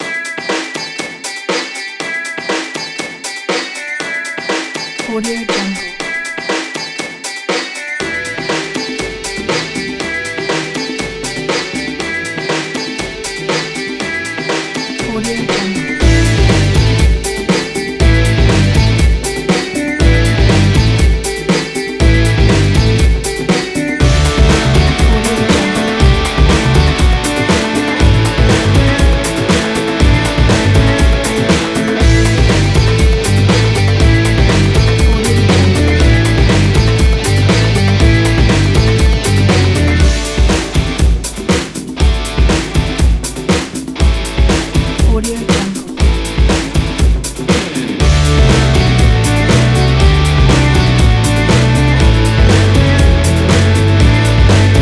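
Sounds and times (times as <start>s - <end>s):
oriental psychedelic rock music: 0.0s - 54.7s.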